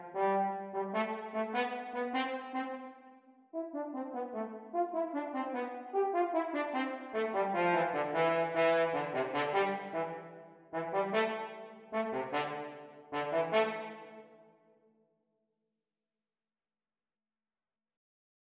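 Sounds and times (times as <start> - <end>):
French horn duet: 0.0 - 2.8, 3.6 - 14.2.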